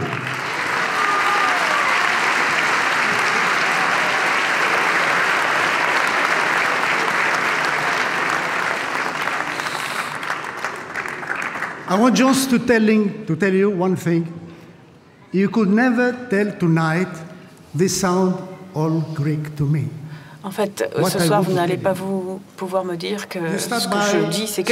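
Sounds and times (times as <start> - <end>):
audience applause: 0.0 - 12.1
speech: 11.9 - 14.4, 15.3 - 24.7.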